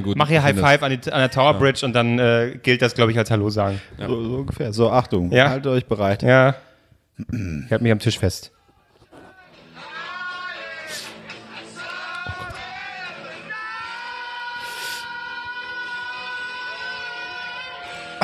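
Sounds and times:
speech: 0.0 - 8.6
crowd whistling: 9.5 - 18.2.

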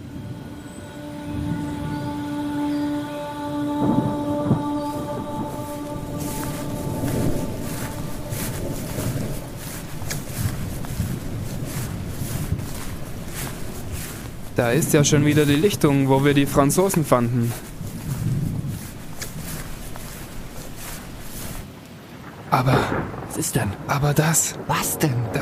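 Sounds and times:
rain: 0.0 - 25.4
thunderstorm thunder: 3.8 - 12.8, 22.2 - 23.9
speech: 14.6 - 17.7, 24.0 - 25.4.

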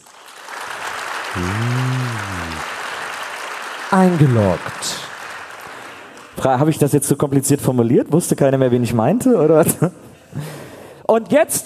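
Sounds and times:
audience applause: 0.0 - 6.3
cheer: 1.3 - 2.7
speech: 1.4 - 1.8, 3.9 - 5.1, 6.4 - 10.5, 11.1 - 11.6.

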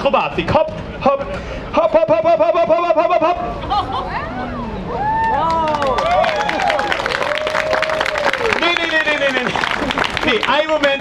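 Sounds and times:
speech: 0.0 - 3.9, 10.3 - 10.9
overlapping whoops and voices from the crowd: 4.2 - 10.3
weak scattered audience applause: 5.2 - 10.9.

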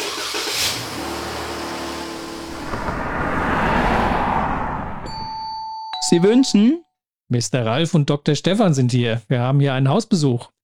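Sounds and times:
car engine starting, idling and driving off: 0.0 - 5.3
speech: 6.1 - 10.6.

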